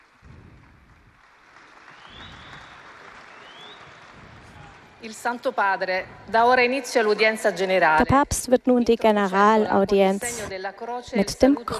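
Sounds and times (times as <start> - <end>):
crowd applause for Pope Leo XIV: 0.0 - 5.5
speech: 5.0 - 11.7.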